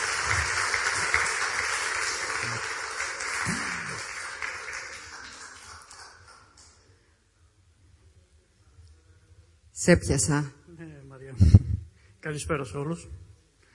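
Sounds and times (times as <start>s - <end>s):
audience applause: 0.0s - 6.8s
speech: 9.8s - 10.6s, 12.3s - 13.2s.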